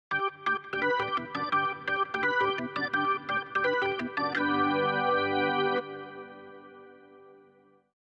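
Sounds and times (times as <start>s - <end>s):
organ: 0.1s - 7.5s.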